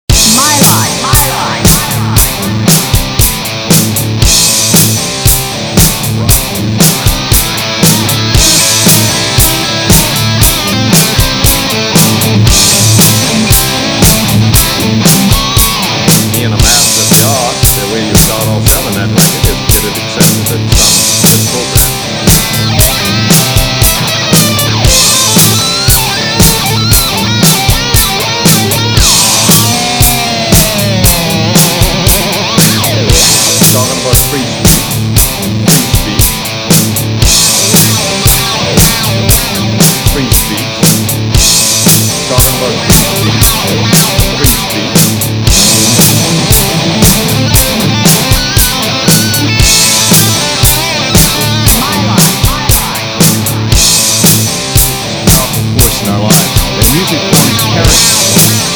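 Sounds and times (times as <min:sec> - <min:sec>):
rock music: 0:00.0 - 0:58.7.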